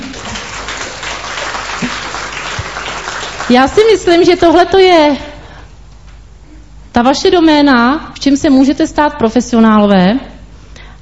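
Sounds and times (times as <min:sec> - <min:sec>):
audience applause: 0:00.0 - 0:03.9
speech: 0:03.5 - 0:05.3, 0:07.0 - 0:10.3.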